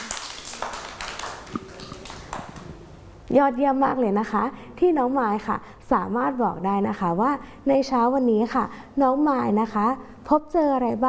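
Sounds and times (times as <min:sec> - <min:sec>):
applause: 0:00.0 - 0:02.8
speech: 0:03.3 - 0:11.0.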